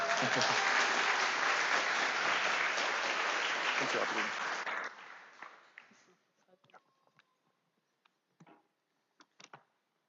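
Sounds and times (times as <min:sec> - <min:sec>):
audience applause: 0:00.0 - 0:06.0
speech: 0:00.2 - 0:00.7, 0:03.8 - 0:04.5.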